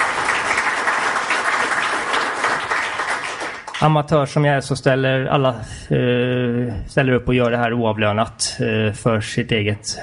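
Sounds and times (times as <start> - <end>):
audience applause: 0.0 - 3.9
speech: 3.8 - 10.0.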